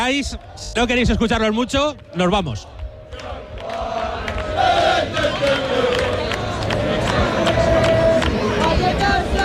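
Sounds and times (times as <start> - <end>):
speech: 0.0 - 3.3
English football fans chanting and shouting: 2.0 - 9.4
people clapping: 2.7 - 9.4.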